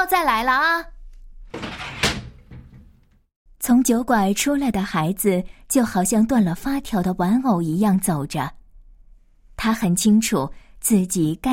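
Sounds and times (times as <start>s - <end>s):
speech: 0.0s - 1.0s, 3.6s - 8.6s, 9.6s - 11.5s
door closing: 1.5s - 3.3s.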